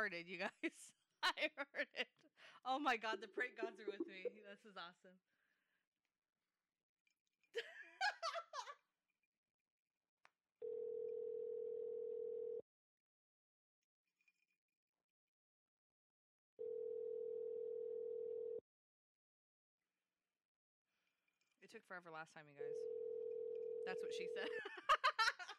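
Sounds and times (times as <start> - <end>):
speech: 0.0 - 5.3, 7.6 - 7.8, 21.6 - 23.0, 23.8 - 25.0
giggling laughter: 3.0 - 4.6, 7.6 - 8.8, 24.4 - 25.5
telephone tone while calling back: 10.6 - 12.6, 16.6 - 18.6.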